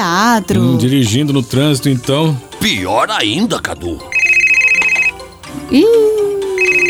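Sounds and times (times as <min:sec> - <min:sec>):
speech: 0:00.0 - 0:04.2, 0:05.7 - 0:06.3
mobile phone ringing: 0:04.1 - 0:05.3, 0:06.6 - 0:06.8.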